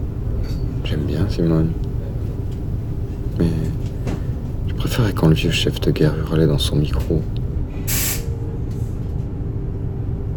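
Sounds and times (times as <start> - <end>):
steady low rumble: 0.0 - 10.3
speech: 1.1 - 1.9, 3.4 - 3.9, 4.8 - 8.0
train air-brake hiss arriving at Saint-Chamond station: 7.8 - 9.0.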